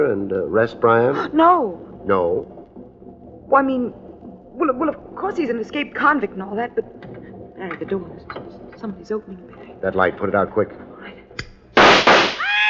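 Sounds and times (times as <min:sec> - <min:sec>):
speech: 0:00.1 - 0:02.6, 0:03.5 - 0:04.0, 0:04.6 - 0:10.9
gunshots fired in the dark: 0:11.8 - 0:12.5.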